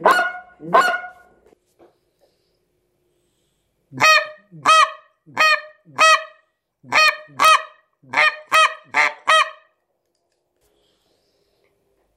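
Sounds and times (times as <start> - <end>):
Canada goose honking: 4.0 - 9.6.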